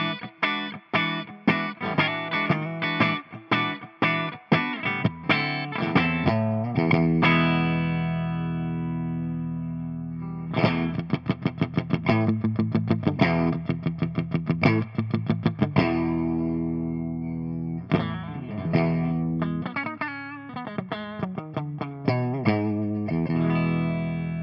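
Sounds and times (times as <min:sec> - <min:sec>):
ENGL amp channel one clean bright guitar tone with reverb, V30, humbucker: 0:00.0 - 0:24.4.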